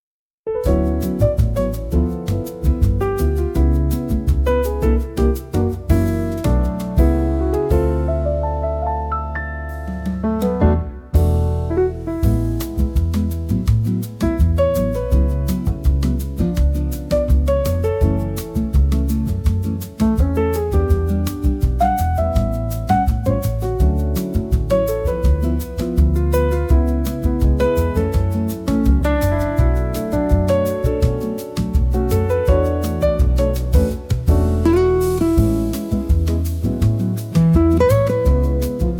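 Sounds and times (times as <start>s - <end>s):
moody jazz piece: 0.5s - 38.9s.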